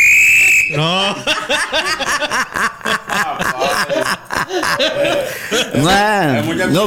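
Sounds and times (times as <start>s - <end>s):
referee whistle being blown: 0.0s - 0.9s
laughter: 0.6s - 6.8s
speech: 0.7s - 3.0s, 4.8s - 6.8s.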